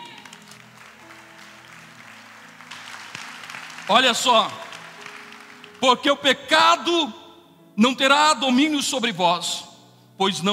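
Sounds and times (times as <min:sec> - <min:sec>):
audience applauding: 0:00.0 - 0:05.8
speech: 0:03.9 - 0:04.6, 0:05.8 - 0:07.2, 0:07.8 - 0:10.5.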